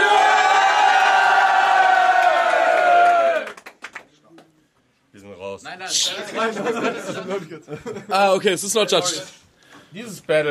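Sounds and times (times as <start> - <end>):
scattered shouts: 0.0 - 3.4
crowd cheering and yelling: 0.0 - 3.6
scattered claps: 2.2 - 4.5
speech: 5.9 - 10.4
laughter: 6.0 - 8.6.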